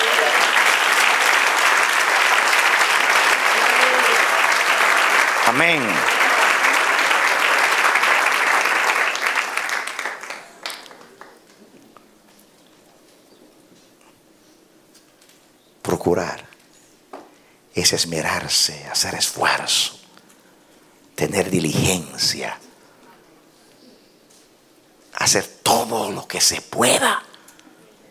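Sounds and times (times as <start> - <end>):
audience applause: 0.0 - 11.5
speech: 5.5 - 6.1, 16.0 - 16.4, 17.8 - 20.0, 21.2 - 22.7, 25.3 - 27.3.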